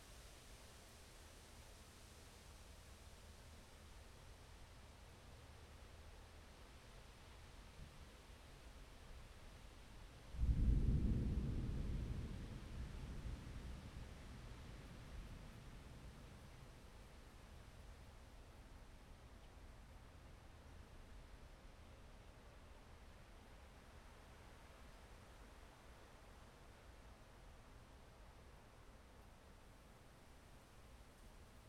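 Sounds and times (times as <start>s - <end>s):
thunderstorm: 10.3s - 17.0s.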